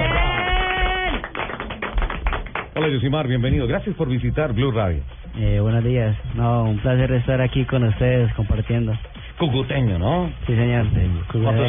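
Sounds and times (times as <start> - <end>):
studio applause for guest: 0.0 - 3.2
speech: 2.8 - 11.6.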